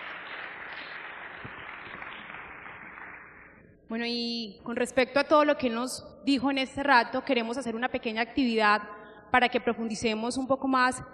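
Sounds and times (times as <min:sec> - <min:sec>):
audience applauding: 0:00.0 - 0:03.6
speech: 0:03.9 - 0:11.1.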